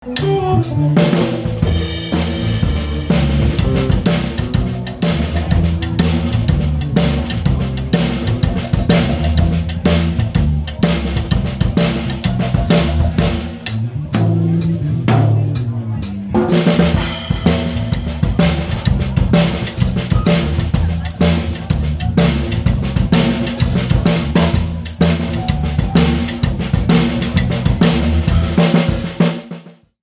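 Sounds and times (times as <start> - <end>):
drums: 0.0 - 30.0.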